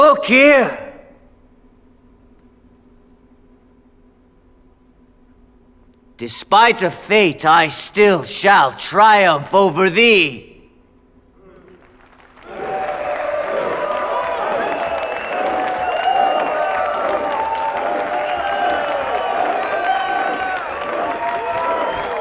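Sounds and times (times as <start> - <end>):
speech: 0.2 - 0.8, 6.2 - 10.5
theatre audience applause at a curtain call: 11.6 - 22.2
scattered shouts and cheering voices: 12.4 - 22.2.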